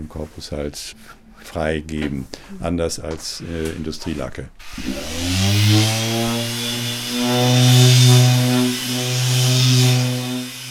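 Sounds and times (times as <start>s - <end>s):
speech: 0.0s - 6.0s
band saw cutting parts for musical instruments in an instrument workshop: 4.6s - 10.6s.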